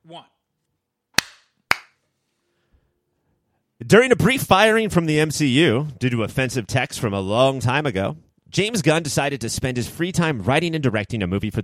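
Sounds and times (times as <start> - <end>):
speech: 0.1 - 0.4, 3.8 - 11.6
hand clap for recording sync: 1.2 - 2.0.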